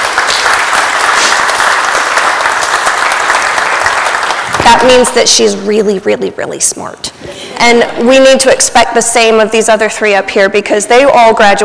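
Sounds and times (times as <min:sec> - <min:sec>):
crowd applause: 0:00.0 - 0:05.2
speech: 0:04.8 - 0:11.6.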